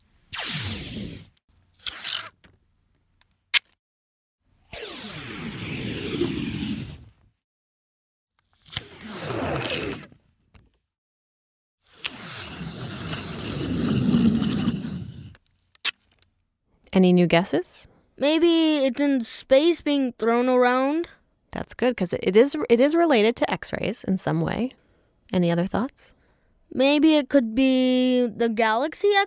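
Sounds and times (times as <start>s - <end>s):
Scotch tape being peeled in strips: 0.0s - 2.6s, 8.4s - 10.7s, 11.9s - 16.3s
speech: 17.0s - 29.2s.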